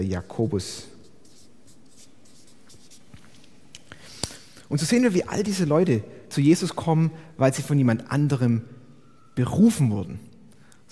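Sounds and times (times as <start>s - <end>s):
speech: 0.0s - 0.9s, 4.7s - 8.8s, 9.4s - 10.3s
writing on a board: 1.0s - 3.1s.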